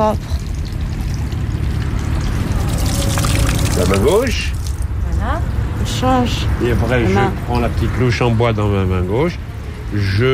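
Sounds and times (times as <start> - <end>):
speech: 0.0 - 0.4, 3.8 - 4.6, 5.2 - 10.3
water poured outdoors over the left hand while washing: 0.0 - 5.0.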